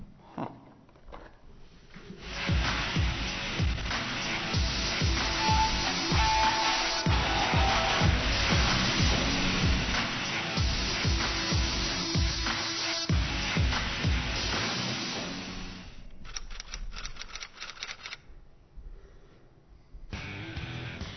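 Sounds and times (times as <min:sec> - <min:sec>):
loud rushing noise: 0:02.5 - 0:15.3.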